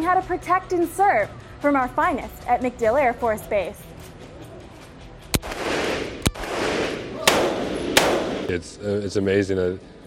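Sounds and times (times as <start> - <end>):
speech: 0.0 - 3.9, 8.5 - 9.9
military weapons firing at MacDill Air Force Base: 5.4 - 8.6.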